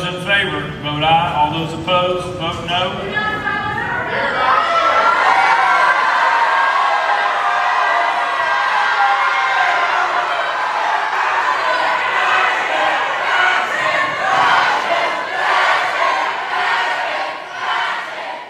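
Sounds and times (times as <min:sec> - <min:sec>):
speech: 0:00.3 - 0:03.5, 0:04.1 - 0:04.6
gallery crowd shouting and chanting in the House: 0:02.8 - 0:18.4.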